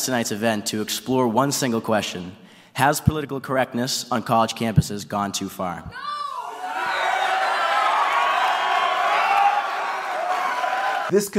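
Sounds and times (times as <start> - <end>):
speech: 0.0 - 6.2, 11.1 - 11.3
audience hecklers shouting and jeering: 5.9 - 11.1
whoops: 5.9 - 11.1.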